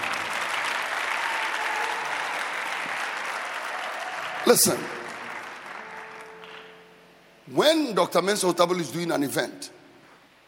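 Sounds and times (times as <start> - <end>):
audience clapping: 0.0 - 7.0
speech: 4.4 - 5.0, 7.5 - 9.8.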